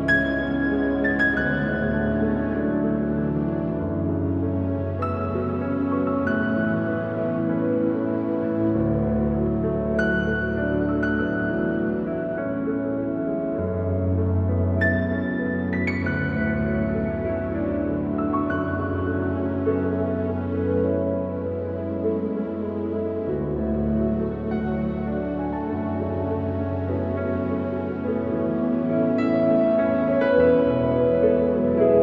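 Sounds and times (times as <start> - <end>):
mystical relaxing piano music: 0.0 - 32.0.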